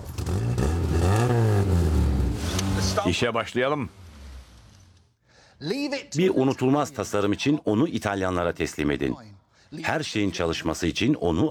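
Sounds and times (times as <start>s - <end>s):
Volkswagen Golf GTI engine running and revving: 0.0s - 4.9s
speech: 3.0s - 4.0s, 5.6s - 11.5s.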